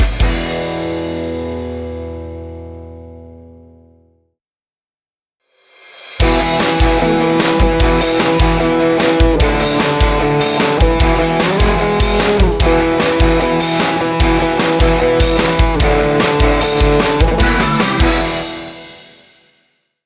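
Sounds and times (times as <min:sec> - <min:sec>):
hard rock ident music: 0:00.0 - 0:01.9, 0:06.2 - 0:19.4.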